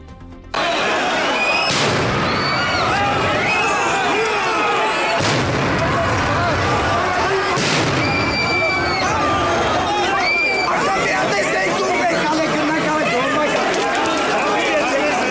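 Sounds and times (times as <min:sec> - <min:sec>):
shouting crowd: 0:00.5 - 0:15.2
stun grenades exploding: 0:01.6 - 0:02.8, 0:05.2 - 0:06.8, 0:07.5 - 0:08.8.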